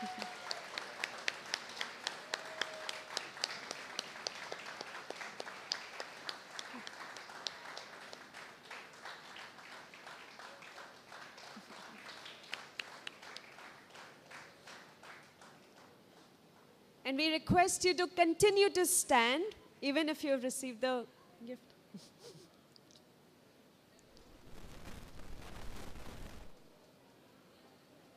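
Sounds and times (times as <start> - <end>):
crowd applauding: 0.0 - 15.9
speech: 17.1 - 22.1.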